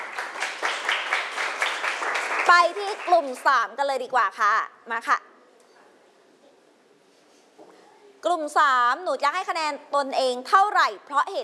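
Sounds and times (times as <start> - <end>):
classmates clapping for a student group after its presentation in a classroom: 0.0 - 3.6
speech: 2.5 - 5.3, 8.2 - 11.4.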